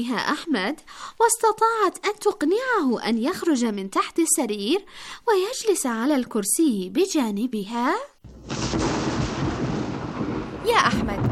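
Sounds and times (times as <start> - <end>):
speech: 0.0 - 8.9, 10.7 - 11.3
thunder: 8.2 - 11.3.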